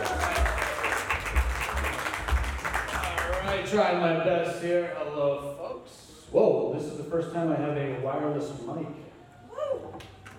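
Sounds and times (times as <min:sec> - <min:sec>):
audience applause and clapping: 0:00.0 - 0:03.7
speech: 0:03.7 - 0:09.1.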